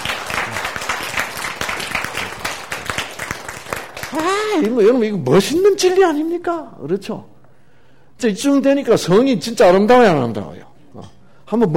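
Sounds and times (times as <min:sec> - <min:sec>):
audience applause: 0:00.0 - 0:04.8
speech: 0:04.1 - 0:07.3, 0:08.2 - 0:11.7.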